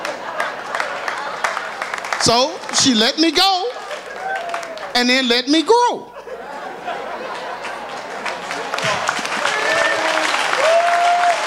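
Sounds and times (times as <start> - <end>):
crowd clapping: 0.0 - 5.3, 6.9 - 11.4
laughter: 0.0 - 10.6
speech: 2.2 - 3.7, 5.0 - 6.1
whoops and calls: 9.6 - 11.4.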